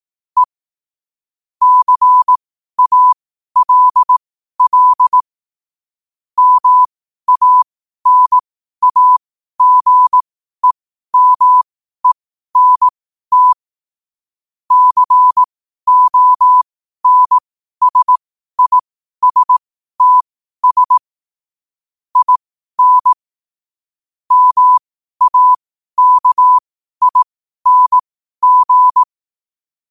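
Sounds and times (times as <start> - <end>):
morse code at 5 wpm: 1.6 - 5.2, 6.4 - 13.6, 14.7 - 21.1, 22.2 - 23.2, 24.3 - 29.1.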